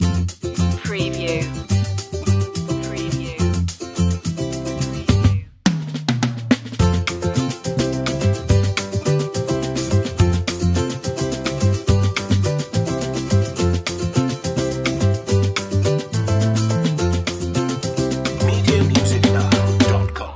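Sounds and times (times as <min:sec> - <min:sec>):
music loop: 0:00.0 - 0:05.5, 0:06.8 - 0:20.3.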